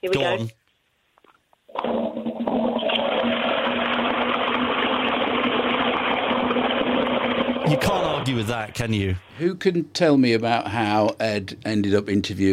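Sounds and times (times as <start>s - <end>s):
speech: 0.0s - 0.6s, 7.7s - 12.5s
modern toilet flushing: 1.7s - 8.9s.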